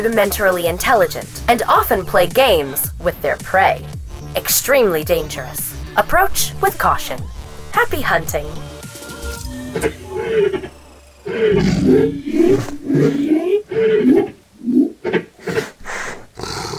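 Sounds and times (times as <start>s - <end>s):
speech: 0.0s - 8.7s, 9.7s - 15.3s
big cats roaring in deep rumbling bursts: 10.2s - 16.7s.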